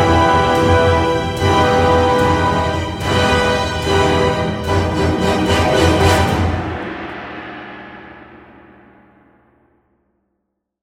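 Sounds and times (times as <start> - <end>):
dark combat music: 0.0 - 8.6.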